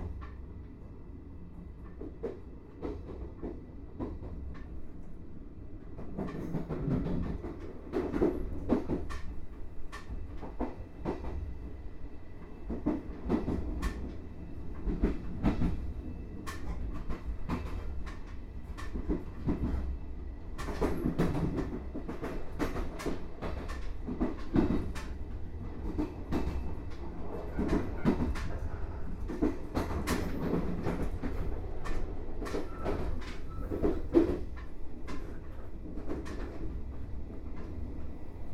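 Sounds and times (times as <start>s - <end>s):
sleeping car train: 0.0s - 38.5s.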